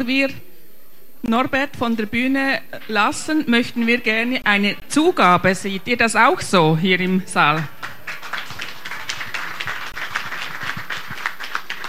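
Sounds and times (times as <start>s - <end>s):
speech: 0.0s - 0.5s, 1.2s - 7.8s
large audience applause: 7.6s - 11.8s.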